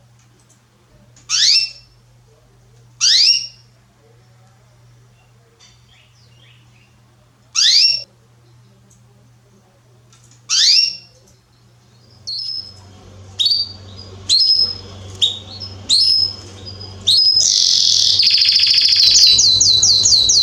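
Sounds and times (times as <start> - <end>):
Belgian canary singing: 1.3 - 2.0, 3.0 - 3.8, 5.1 - 7.0, 7.6 - 8.1, 10.5 - 11.2, 11.9 - 20.4
steady low hum: 12.0 - 20.4.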